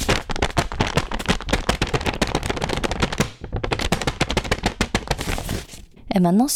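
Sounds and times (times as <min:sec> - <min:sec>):
handmade paper being stretched: 0:00.0 - 0:06.0.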